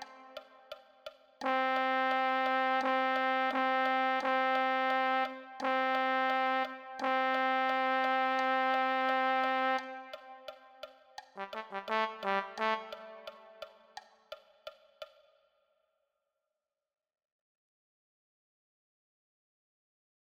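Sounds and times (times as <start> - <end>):
low brass: 1.4 - 10.5, 11.4 - 13.9.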